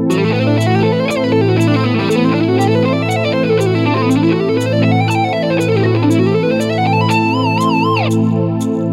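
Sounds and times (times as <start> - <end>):
metal music: 0.1 - 8.7.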